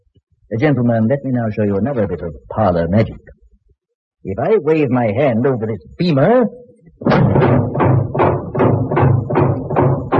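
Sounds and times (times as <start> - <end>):
speech: 0.5 - 3.4, 4.2 - 7.8
steel shutters slamming shut: 7.0 - 10.1.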